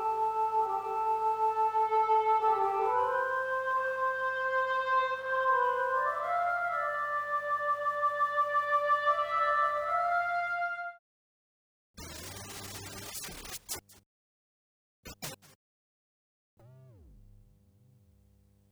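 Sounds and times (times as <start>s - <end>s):
Korg Kaossilator synthesizer: 0.0s - 10.9s.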